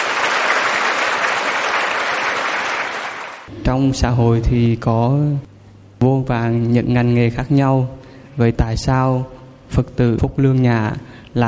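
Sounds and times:
audience applause: 0:00.0 - 0:03.5
speech: 0:03.7 - 0:11.4.

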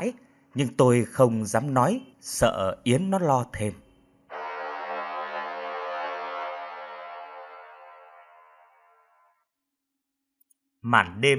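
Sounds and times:
speech: 0:00.0 - 0:03.8, 0:10.8 - 0:11.3
vehicle horn blast at night: 0:04.3 - 0:09.4.

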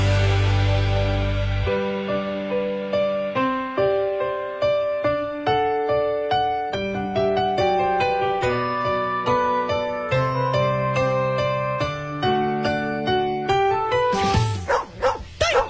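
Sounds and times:
tuneful music: 0:00.0 - 0:15.6
dog barking as the mythical hound Xiaotian in a liquor advert: 0:14.6 - 0:15.6.

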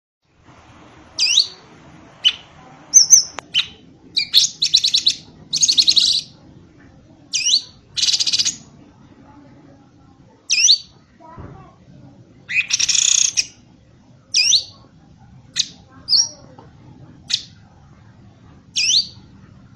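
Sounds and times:
bird song of sharp high chirps, slurred whistles and buzzy rattles: 0:01.2 - 0:01.6, 0:02.2 - 0:06.4, 0:07.3 - 0:08.7, 0:10.5 - 0:11.0, 0:12.5 - 0:13.6, 0:14.3 - 0:14.8, 0:15.5 - 0:16.5, 0:18.7 - 0:19.7.

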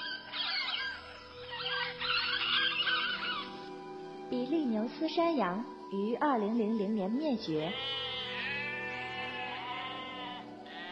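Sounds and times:
Carolina parakeet flock squawking: 0:00.0 - 0:03.8, 0:07.6 - 0:10.8
speech: 0:04.3 - 0:08.0.

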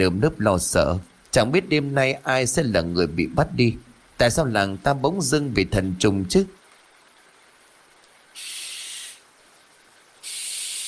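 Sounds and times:
speech: 0:00.0 - 0:06.6
barn owl screech: 0:08.4 - 0:09.2, 0:10.2 - 0:10.8.

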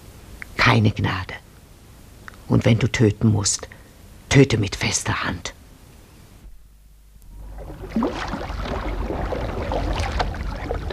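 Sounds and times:
speech: 0:00.7 - 0:01.4, 0:02.5 - 0:05.6
river water splashing as a light canoe is pushed into the current: 0:07.3 - 0:10.9.

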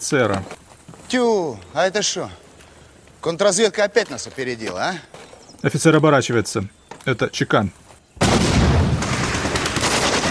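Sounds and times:
speech: 0:00.0 - 0:02.4, 0:03.2 - 0:08.5
gunfire of bandits firing from a ruined building in an ambush: 0:08.2 - 0:10.2.

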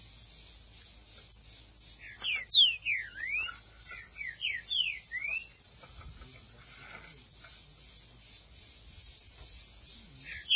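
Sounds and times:
green-winged saltator singing: 0:00.0 - 0:05.7, 0:08.0 - 0:10.5.

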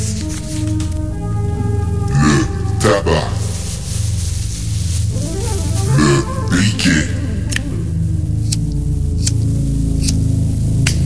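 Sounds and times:
thin rolling paper rustling: 0:00.0 - 0:01.0, 0:02.6 - 0:06.6
low droning hum: 0:00.0 - 0:11.0.

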